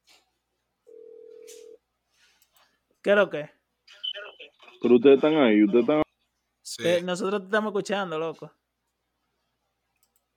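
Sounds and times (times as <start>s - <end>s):
phone incoming-call ring: 0.9s - 1.8s
speech: 3.0s - 3.6s, 4.8s - 6.0s, 6.8s - 8.6s.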